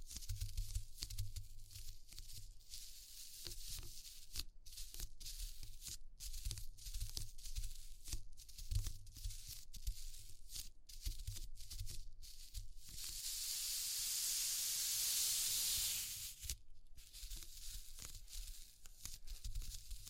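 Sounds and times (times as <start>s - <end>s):
dense irregular crackles and scratchy bursts: 0.0s - 13.4s, 16.2s - 20.0s
steady bright hiss: 12.9s - 16.5s.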